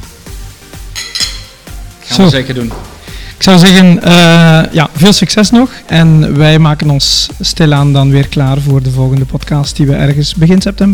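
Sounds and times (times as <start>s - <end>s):
glasses clinking in a toast: 0.9s - 1.7s
speech: 2.2s - 10.9s.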